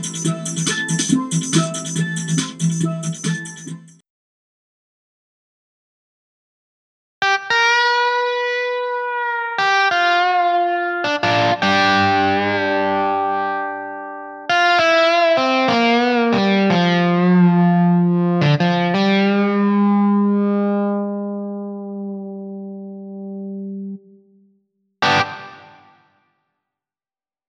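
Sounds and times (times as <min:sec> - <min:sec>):
electronic instruments: 0:00.0 - 0:04.0, 0:07.3 - 0:24.0, 0:25.0 - 0:26.0.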